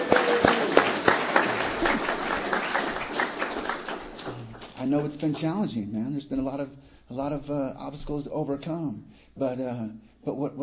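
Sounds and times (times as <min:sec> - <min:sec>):
audience applause: 0:00.0 - 0:04.9
speech: 0:04.8 - 0:10.6.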